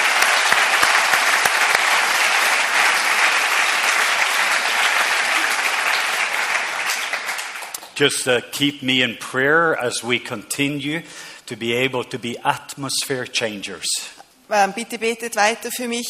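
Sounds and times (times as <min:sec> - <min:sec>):
audience applause: 0:00.0 - 0:08.0
speech: 0:08.0 - 0:16.0.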